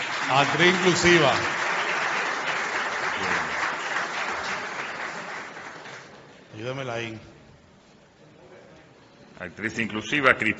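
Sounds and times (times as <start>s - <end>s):
audience applause: 0.0s - 6.3s
speech: 0.3s - 1.6s, 6.6s - 7.3s, 9.4s - 10.5s.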